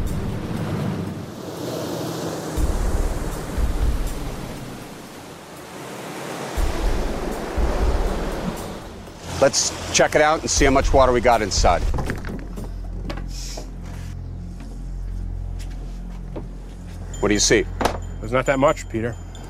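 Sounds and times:
waves washing over a kayak: 0.1 - 11.8
speech: 9.4 - 12.0, 17.2 - 19.4.

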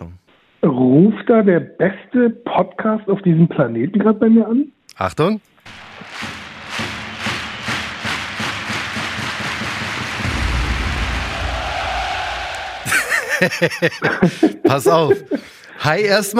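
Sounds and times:
speech: 0.7 - 5.5, 13.4 - 16.3
stadium crowd roaring: 5.7 - 13.8
laughter: 12.8 - 15.6.

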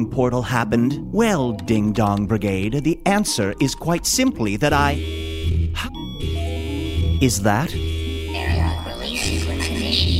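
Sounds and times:
speech: 0.0 - 5.2, 7.2 - 7.8
airlock alarm buzzing: 4.7 - 10.1.

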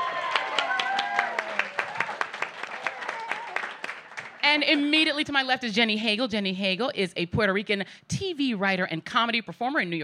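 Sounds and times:
people whooping and cheering: 0.0 - 4.0
audience applause: 0.0 - 4.7
speech: 4.5 - 10.0.

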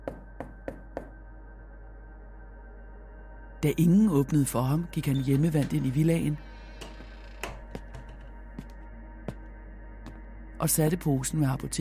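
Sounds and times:
speech: 3.6 - 6.5, 10.6 - 11.7
knocking on a front door: 6.8 - 8.7.

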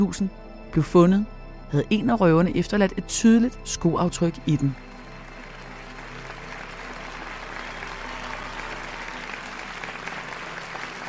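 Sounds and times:
speech: 0.0 - 4.9
theatre audience applause: 4.8 - 11.0.

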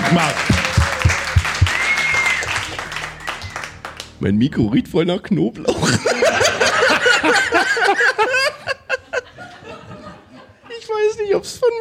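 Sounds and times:
laughter: 0.0 - 2.0, 5.7 - 10.7
clapping from a small group: 0.0 - 4.2
speech: 0.1 - 0.5, 4.2 - 8.4, 11.0 - 11.7
whistle-like tone: 0.7 - 3.8.

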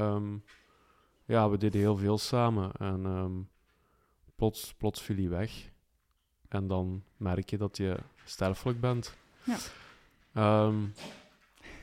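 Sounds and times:
speech: 0.0 - 0.6, 1.3 - 3.5, 4.4 - 5.7, 6.5 - 9.8, 10.4 - 11.2
dog sneezing: 11.0 - 11.3.

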